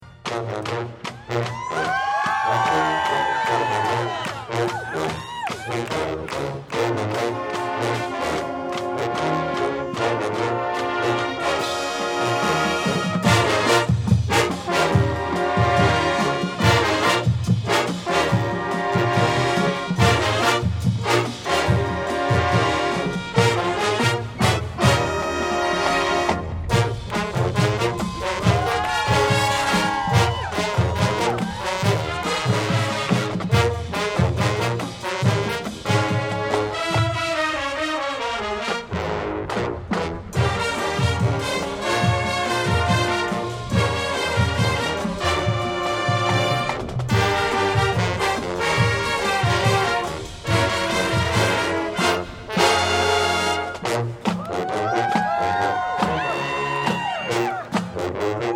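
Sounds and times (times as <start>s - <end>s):
blues music: 0.0s - 58.5s.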